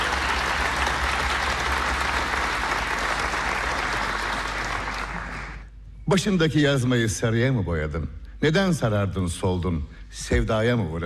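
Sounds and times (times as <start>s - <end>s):
audience applause for female folk singers: 0.0s - 5.7s
speech: 6.1s - 11.0s.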